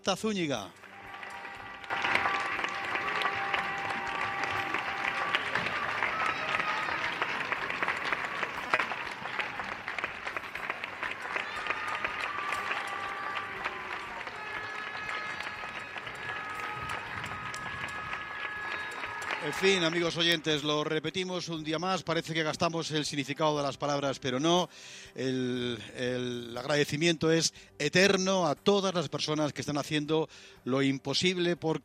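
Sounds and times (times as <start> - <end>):
speech: 0.0 - 0.8, 19.6 - 31.8
applause from neighbours in Usera: 0.7 - 21.0.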